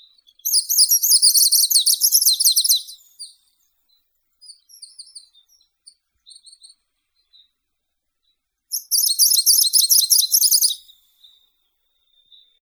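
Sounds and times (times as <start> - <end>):
greenish warbler Phylloscopus trochiloides singing: 0.2 - 3.3, 4.4 - 5.7, 8.7 - 11.4.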